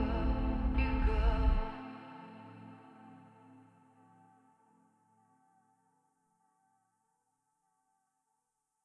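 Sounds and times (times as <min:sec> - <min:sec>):
deep house music: 0:00.0 - 0:02.8.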